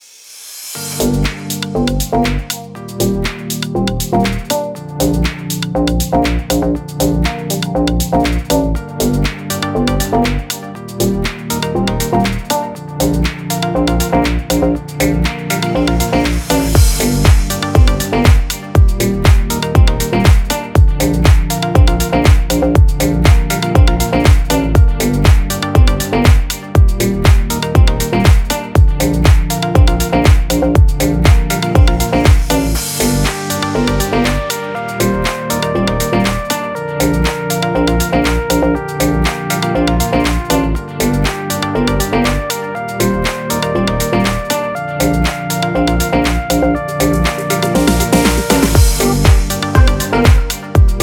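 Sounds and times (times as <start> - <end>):
deep house music: 0.8 - 51.0.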